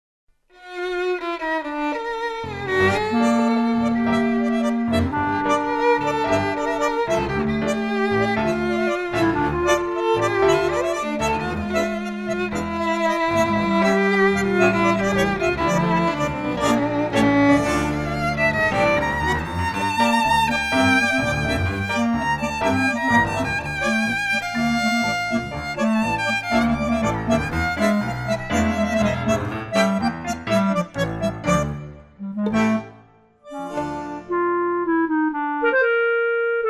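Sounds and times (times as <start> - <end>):
clarinet in D minor: 1.4 - 36.6.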